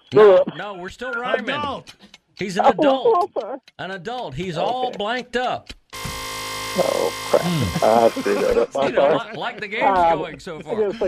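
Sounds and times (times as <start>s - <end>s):
laughter: 0.1s - 1.8s, 2.4s - 3.6s, 6.8s - 11.0s
speech: 0.1s - 5.8s, 6.8s - 11.0s
game buzzer: 6.0s - 8.8s.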